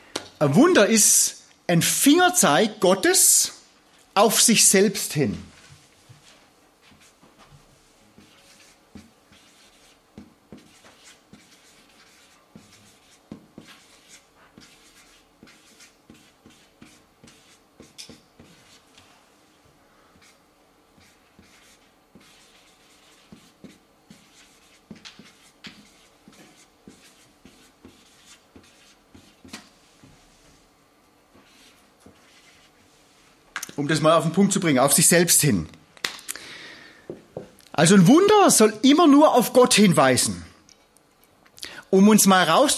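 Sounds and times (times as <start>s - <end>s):
speech: 0.4s - 3.6s, 4.2s - 5.5s, 34.0s - 35.8s, 37.8s - 40.5s, 41.9s - 42.7s
handwriting strokes: 7.9s - 19.0s, 21.0s - 30.2s.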